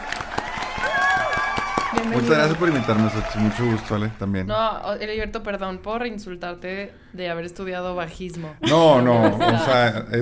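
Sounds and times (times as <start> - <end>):
crowd applause: 0.0 - 4.4
speech: 2.0 - 10.2
laughter: 8.6 - 10.2.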